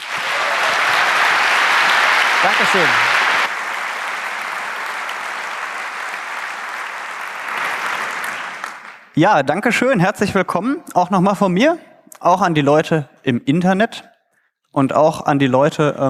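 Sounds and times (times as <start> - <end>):
audience applause: 0.0 - 9.2
speech: 2.4 - 3.1, 9.2 - 14.1, 14.7 - 16.0.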